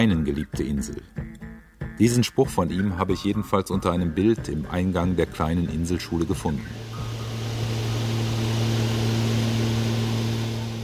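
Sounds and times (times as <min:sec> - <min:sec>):
speech: 0:00.0 - 0:01.4, 0:02.0 - 0:07.1
small propeller plane engine droning during take-off: 0:06.0 - 0:10.8.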